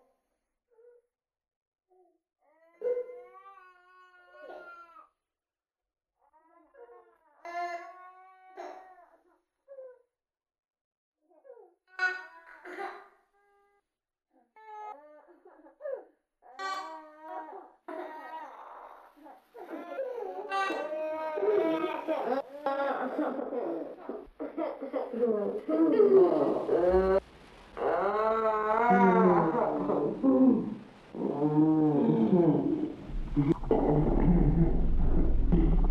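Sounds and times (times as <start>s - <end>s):
noise: 16.6s - 35.8s.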